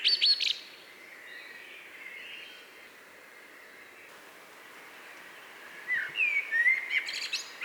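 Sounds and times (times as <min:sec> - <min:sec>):
Eurasian blackbird calling: 0:04.2 - 0:07.6.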